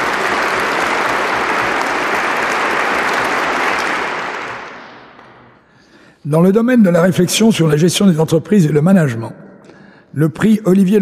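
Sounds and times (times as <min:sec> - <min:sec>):
audience applause: 0:00.0 - 0:05.4
speech: 0:06.3 - 0:09.4, 0:10.1 - 0:10.9.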